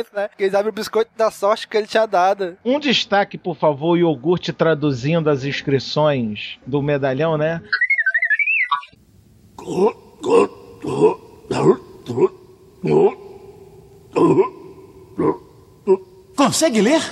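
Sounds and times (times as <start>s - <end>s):
speech: 0.0s - 7.8s, 9.6s - 13.2s, 14.2s - 14.6s, 15.2s - 17.1s
brief high warbling tone: 7.6s - 9.0s
throat clearing with short rasping voiced hacks: 9.6s - 16.2s.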